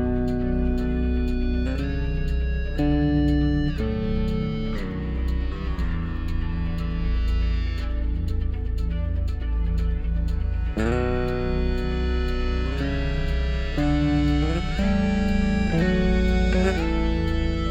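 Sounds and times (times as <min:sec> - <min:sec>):
electric bass playing a bounce rhythm in seven-eight: 0:00.0 - 0:17.6.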